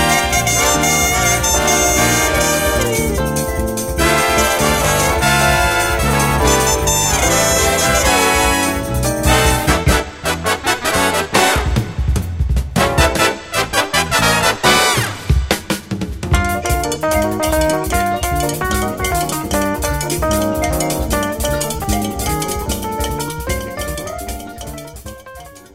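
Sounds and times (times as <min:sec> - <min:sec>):
big band playing samba: 0:00.0 - 0:25.7.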